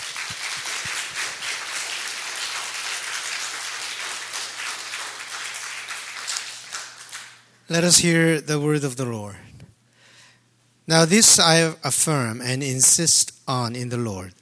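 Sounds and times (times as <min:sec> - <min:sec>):
audience applause: 0:00.0 - 0:07.4
speech: 0:07.7 - 0:09.5, 0:10.9 - 0:14.4.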